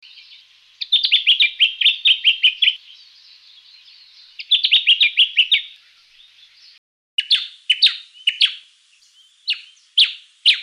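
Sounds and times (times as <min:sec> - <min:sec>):
Yellow-faced honeyeater calls in a Canberra garden: 0:00.1 - 0:03.0, 0:04.2 - 0:06.6, 0:07.2 - 0:08.7, 0:09.4 - 0:10.6.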